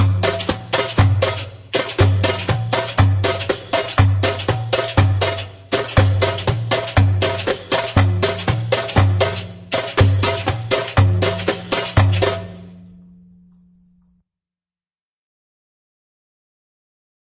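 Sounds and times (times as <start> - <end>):
fast reggae beledi rhythm: 0.0 - 13.0.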